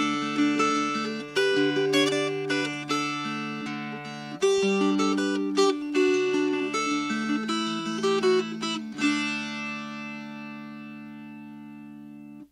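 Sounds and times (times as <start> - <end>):
fingerpicked guitar: 0.0 - 12.4.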